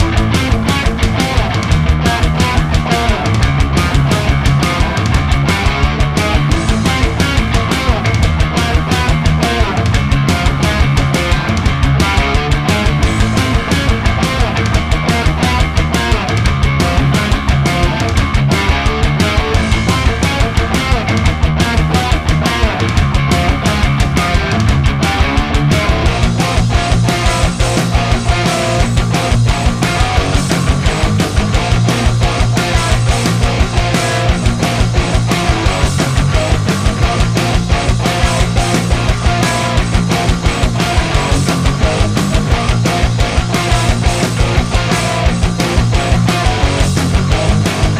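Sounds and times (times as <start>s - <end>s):
battle music loop: 0.0s - 47.9s.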